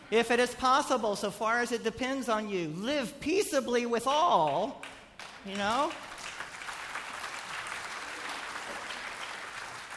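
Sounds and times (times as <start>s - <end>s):
speech: 0.1s - 6.1s
crowd applause: 5.9s - 9.9s.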